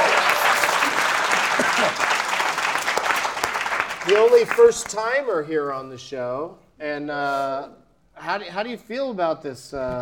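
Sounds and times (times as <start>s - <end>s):
crowd applauding: 0.0s - 5.1s
speech: 4.1s - 10.0s.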